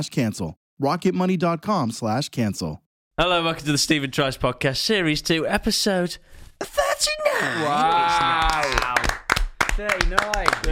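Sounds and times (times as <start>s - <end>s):
speech: 0.0s - 9.1s, 9.8s - 10.7s
hand clapping: 8.0s - 10.7s.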